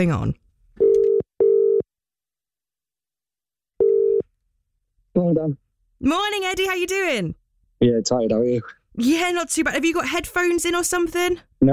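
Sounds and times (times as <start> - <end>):
speech: 0.0 - 0.4, 5.2 - 11.7
outgoing telephone call ringback tone: 0.8 - 1.8, 3.8 - 4.2.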